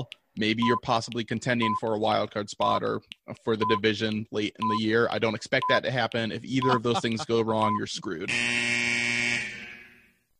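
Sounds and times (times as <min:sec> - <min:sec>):
speech: 0:00.0 - 0:09.0
laughter: 0:06.4 - 0:07.8
basketball shot clock buzzer: 0:08.3 - 0:10.1.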